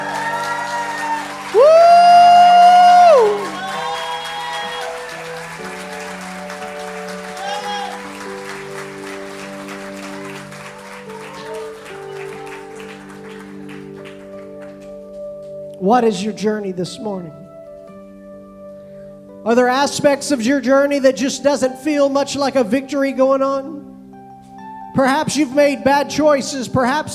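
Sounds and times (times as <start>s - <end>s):
audience clapping hands: 0.0s - 15.6s
speech: 15.9s - 17.4s, 19.5s - 23.9s, 25.0s - 27.1s.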